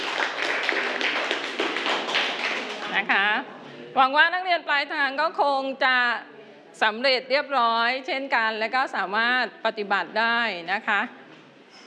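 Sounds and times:
students clapping in a classroom: 0:00.0 - 0:03.1
speech: 0:03.0 - 0:11.2.

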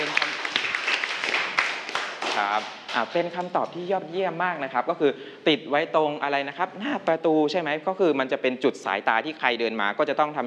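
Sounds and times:
classroom applause: 0:00.0 - 0:03.3
speech: 0:02.4 - 0:10.4.

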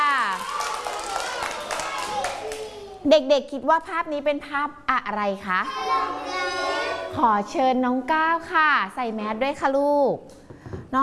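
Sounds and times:
children clapping hands: 0:00.0 - 0:02.9
speech: 0:03.0 - 0:11.0.

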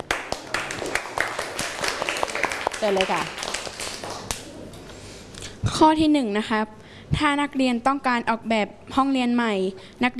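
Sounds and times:
students clapping in a classroom to cheer on classmates: 0:00.0 - 0:04.5
speech: 0:02.8 - 0:03.4, 0:05.8 - 0:10.1.

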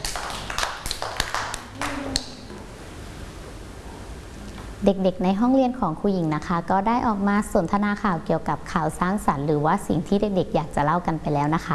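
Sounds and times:
children clapping hands: 0:00.0 - 0:02.5
speech: 0:04.8 - 0:11.7.

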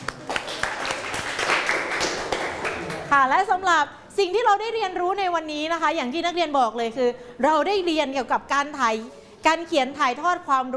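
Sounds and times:
group clapping: 0:00.0 - 0:03.2
speech: 0:03.2 - 0:10.7.

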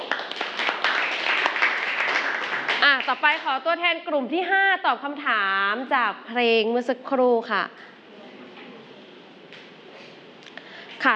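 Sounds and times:
classroom group clapping for a student: 0:00.0 - 0:03.6
speech: 0:03.0 - 0:07.9.

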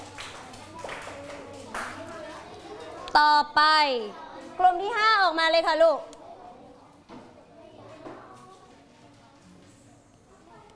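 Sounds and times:
group of children clapping hands: 0:00.0 - 0:02.4
speech: 0:03.1 - 0:06.1.

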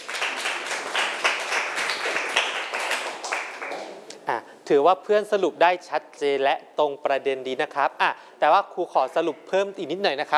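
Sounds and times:
classroom clapping for a student: 0:00.0 - 0:04.0
speech: 0:04.7 - 0:10.3.

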